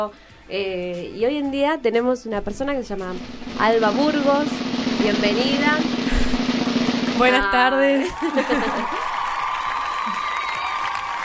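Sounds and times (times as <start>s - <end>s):
speech: 0.0s - 6.2s, 7.2s - 9.1s
laughter: 7.2s - 9.3s
applause: 7.2s - 11.2s.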